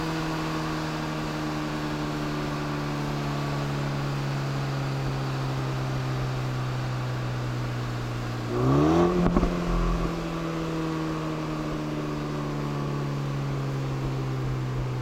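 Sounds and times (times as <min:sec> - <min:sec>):
BMW M235ix with Remus exhaust: 0:00.0 - 0:15.0.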